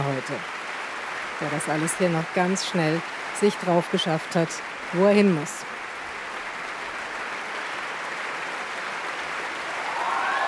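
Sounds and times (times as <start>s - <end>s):
speech: 0.0s - 0.6s, 1.4s - 5.7s
audience applause: 0.0s - 10.4s.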